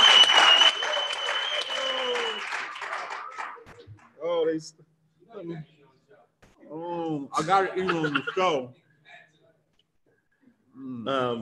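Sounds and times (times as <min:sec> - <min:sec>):
whistle-like tone: 0:00.0 - 0:02.6
crowd clapping and cheering: 0:00.0 - 0:03.8
speech: 0:04.6 - 0:05.8, 0:07.2 - 0:08.8, 0:10.8 - 0:11.4
laughter: 0:07.4 - 0:08.7.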